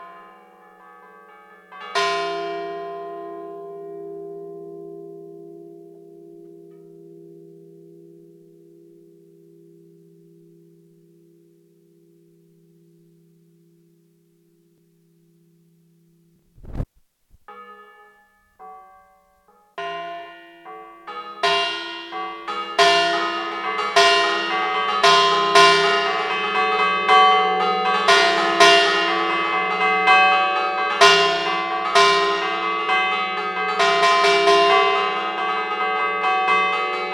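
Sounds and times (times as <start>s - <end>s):
sanctuary church bells in Montegrazie Liguria: 0.0s - 9.3s, 17.5s - 37.1s.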